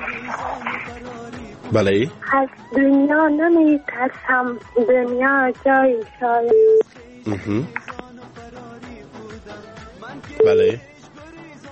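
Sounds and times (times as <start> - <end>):
speech: 1.7 - 7.8, 10.4 - 10.9
telephone tone after a radio caller's line disconnects: 6.5 - 6.9, 10.4 - 10.8.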